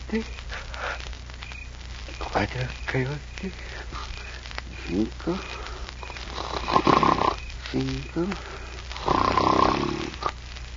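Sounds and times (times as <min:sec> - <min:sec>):
speech: 0:00.1 - 0:00.5, 0:02.2 - 0:04.1, 0:04.8 - 0:05.6, 0:07.7 - 0:10.0
man snoring: 0:06.3 - 0:10.4.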